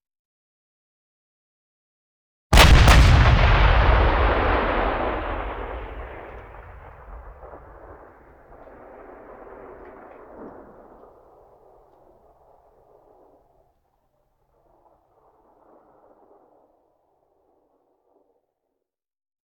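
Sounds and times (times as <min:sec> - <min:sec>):
artillery cannon firing: 0:02.5 - 0:11.8.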